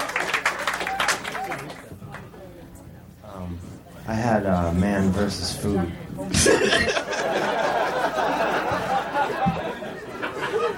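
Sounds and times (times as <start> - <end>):
people whooping: 0.0 - 1.8
audience clapping for a comedian: 0.0 - 2.3
speech: 4.1 - 7.0
laughter: 6.3 - 10.7.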